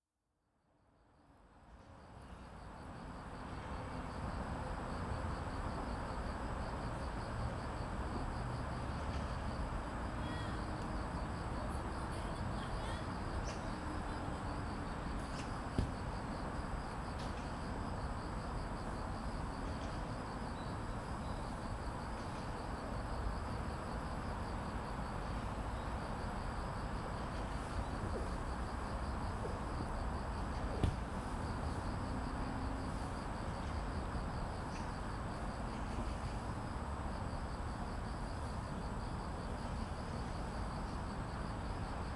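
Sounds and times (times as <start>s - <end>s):
street traffic rumble: 1.8s - 42.1s
cricket trilling: 9.5s - 42.1s.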